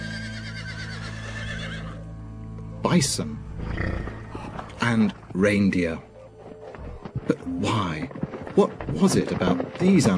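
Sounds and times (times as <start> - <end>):
horse neighing: 0.0 - 2.1, 3.5 - 4.8
speech: 2.8 - 3.9, 4.9 - 6.1, 7.5 - 10.1.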